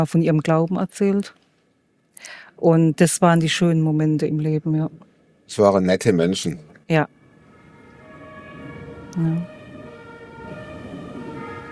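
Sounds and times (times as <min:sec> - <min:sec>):
speech: 0:00.0 - 0:01.4, 0:02.2 - 0:07.2, 0:09.2 - 0:09.5
emergency vehicle siren passing: 0:06.9 - 0:11.7.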